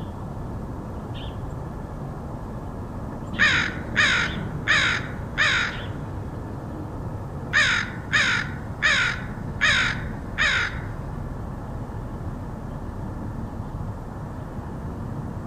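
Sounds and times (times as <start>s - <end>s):
low background noise: 0.0s - 15.4s
crow cawing: 3.4s - 6.0s, 7.5s - 11.0s.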